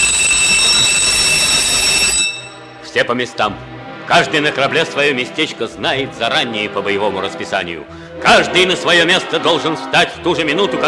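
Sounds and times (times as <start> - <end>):
ship's general alarm bells ringing: 0.0 - 2.9
speech: 3.0 - 10.8.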